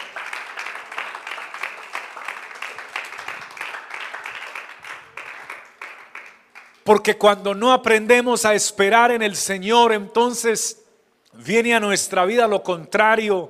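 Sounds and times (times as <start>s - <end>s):
crowd applauding: 0.0s - 6.8s
speech: 6.9s - 10.8s, 11.4s - 13.4s.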